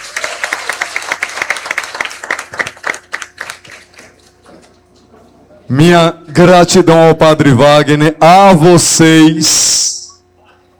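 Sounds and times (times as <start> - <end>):
round of applause: 0.0 - 4.3
speech: 5.7 - 9.9.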